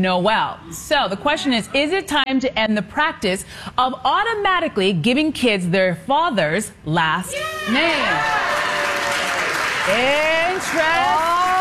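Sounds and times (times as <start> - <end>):
speech: 0.0 - 8.8, 9.9 - 11.5
audience clapping: 8.1 - 11.5.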